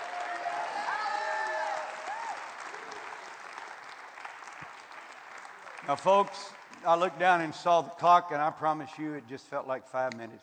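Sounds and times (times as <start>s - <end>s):
whoops and raised voices: 0.0s - 3.1s
audience applause: 0.0s - 7.2s
speech: 5.9s - 10.4s.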